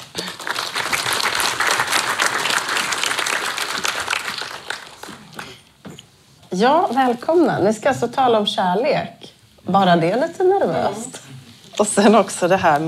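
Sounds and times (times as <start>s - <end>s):
audience applause: 0.0s - 5.6s
speech: 6.5s - 11.2s, 11.8s - 12.8s.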